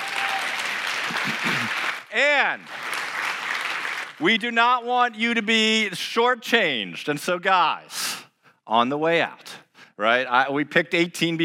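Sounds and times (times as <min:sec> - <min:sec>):
crowd applause: 0:00.0 - 0:04.2
speech: 0:01.2 - 0:02.8, 0:04.2 - 0:08.0, 0:08.7 - 0:11.4.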